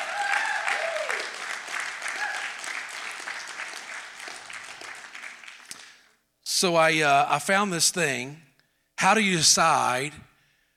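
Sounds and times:
crowd applauding: 0.0 - 6.1
speech: 6.6 - 8.4, 9.0 - 10.3.

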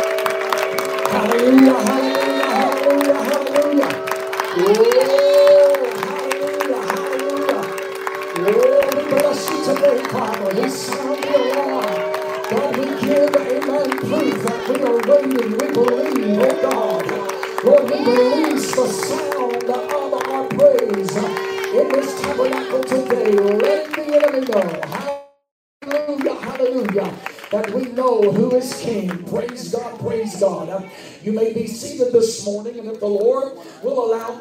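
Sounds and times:
audience cheering: 0.0 - 25.1
audience clapping: 0.0 - 30.6
speech: 1.2 - 2.1, 4.6 - 5.2, 30.7 - 34.3.

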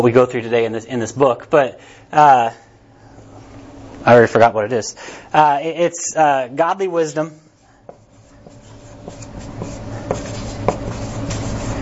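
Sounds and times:
speech: 0.0 - 2.6, 4.0 - 7.4
scratchy writing on a board: 7.5 - 11.8.

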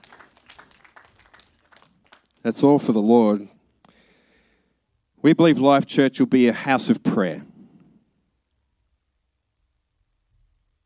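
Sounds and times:
light applause: 0.0 - 2.7
speech: 2.4 - 3.6, 5.2 - 7.5.

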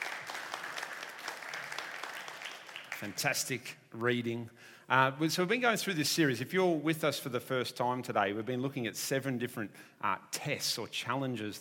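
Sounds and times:
audience applause: 0.0 - 3.4
speech: 3.0 - 11.5.

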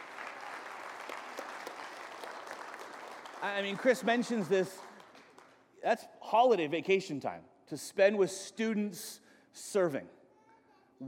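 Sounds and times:
audience applause: 0.0 - 5.5
speech: 3.4 - 4.9, 5.8 - 10.2.

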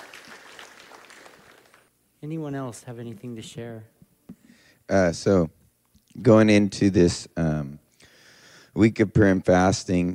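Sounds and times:
audience applause: 0.0 - 1.9
speech: 2.2 - 4.0, 4.9 - 5.6, 6.2 - 7.7, 8.8 - 10.1.

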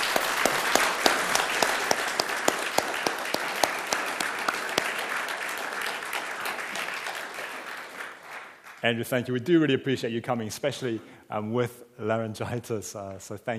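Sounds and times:
audience applause: 0.0 - 8.8
speech: 8.8 - 13.5.

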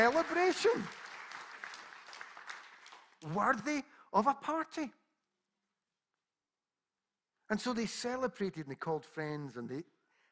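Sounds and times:
speech: 0.0 - 1.0, 3.2 - 5.0, 7.5 - 9.9
audience applause: 0.0 - 3.6.

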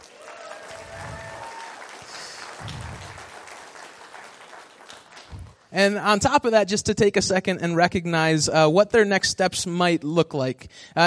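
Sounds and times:
audience applause: 0.0 - 5.7
low thumps: 2.6 - 3.1, 5.3 - 5.6
speech: 5.7 - 11.0.

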